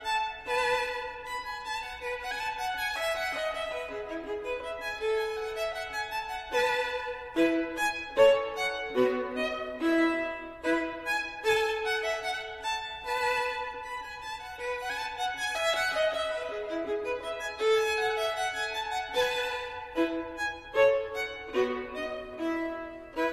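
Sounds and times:
violin: 0:00.0 - 0:23.3.

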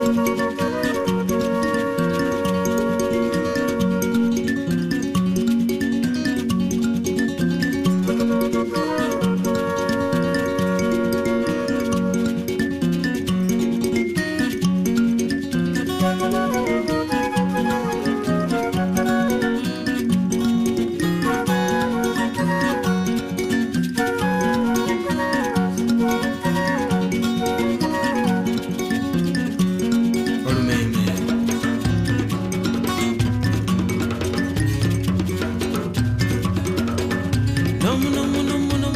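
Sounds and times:
traditional Luganda music: 0:00.0 - 0:38.9.

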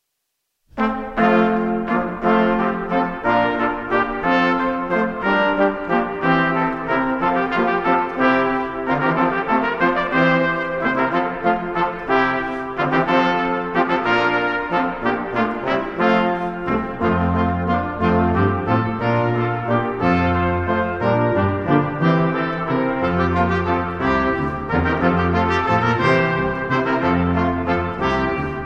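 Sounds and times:
brass quintet playing a traditional wassail: 0:00.7 - 0:28.6.

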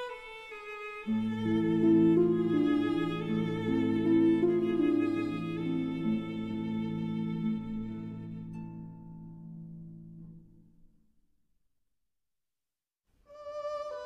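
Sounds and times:
berceuse for violin and harp: 0:00.0 - 0:09.4, 0:13.3 - 0:14.0.

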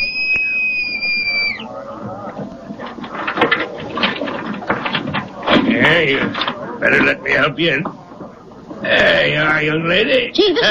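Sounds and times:
boatswain's pipe whistle: 0:00.0 - 0:01.7
busy clatter of noise: 0:01.7 - 0:08.9
speech: 0:06.0 - 0:08.0, 0:08.8 - 0:10.6.

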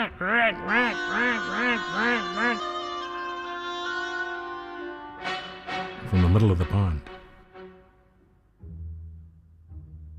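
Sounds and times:
speech: 0:00.0 - 0:02.8, 0:06.1 - 0:07.1
reedy nasal instrument imitating an angry duck: 0:00.0 - 0:06.5.

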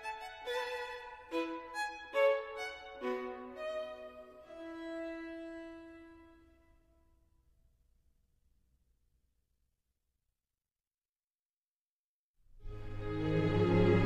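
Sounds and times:
violin: 0:00.0 - 0:06.8, 0:12.6 - 0:14.0.

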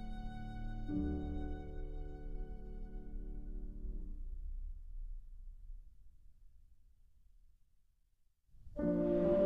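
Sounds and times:
violin: 0:00.0 - 0:03.9
piano: 0:00.0 - 0:06.8, 0:08.6 - 0:09.4.

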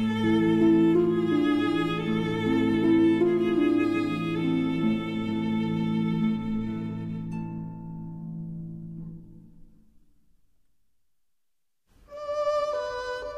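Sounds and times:
berceuse for violin and harp: 0:00.0 - 0:08.3, 0:12.1 - 0:13.3.

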